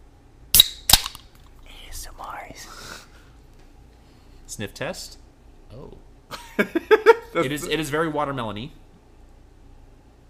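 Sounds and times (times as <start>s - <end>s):
soda can cracking open: 0.5s - 1.3s
speech: 2.0s - 3.1s, 4.5s - 8.8s
laughter: 6.3s - 7.8s.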